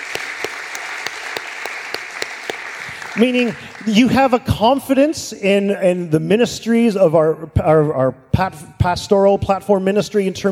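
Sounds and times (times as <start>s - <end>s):
congregation clapping during a sermon: 0.0s - 4.7s
speech: 3.2s - 10.5s.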